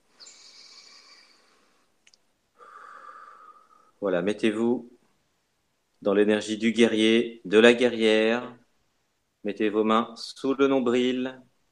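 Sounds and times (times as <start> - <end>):
deep breath: 0.0 - 4.0
speech: 4.0 - 4.9, 6.0 - 8.6, 9.4 - 11.5.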